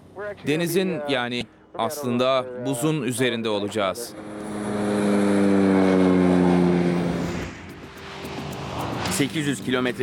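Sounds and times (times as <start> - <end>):
airplane taxiing toward the runway: 0.0 - 10.0
speech: 0.2 - 4.3, 9.2 - 10.0.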